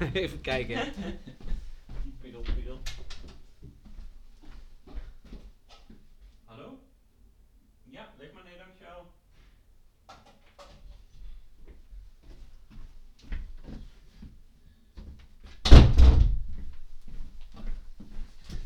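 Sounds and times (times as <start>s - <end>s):
voices: 0.0s - 1.2s
speech: 0.0s - 1.4s
laughter: 0.0s - 1.7s
door opening and closing for a delivery: 2.5s - 3.3s, 15.6s - 16.7s.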